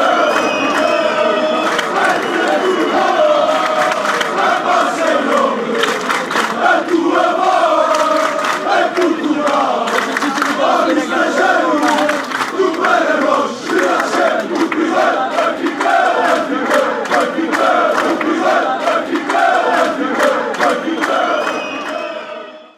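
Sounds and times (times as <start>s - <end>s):
football fans chanting: 0.0s - 22.7s.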